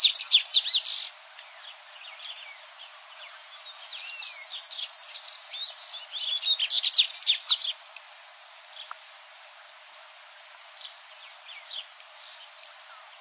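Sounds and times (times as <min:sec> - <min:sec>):
Dubois's seedeater chirping: 0:00.0 - 0:01.1, 0:03.2 - 0:07.8.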